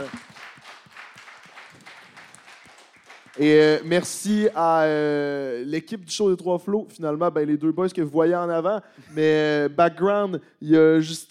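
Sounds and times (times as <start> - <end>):
audience applause: 0.0 - 4.3
speech: 3.4 - 11.2.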